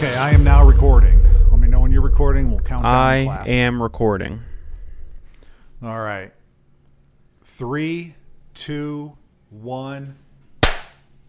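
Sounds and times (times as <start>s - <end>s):
speech: 0.0s - 1.3s, 2.2s - 4.5s, 5.8s - 6.4s, 7.6s - 10.2s
sharp hand clap for sync: 10.6s - 11.0s.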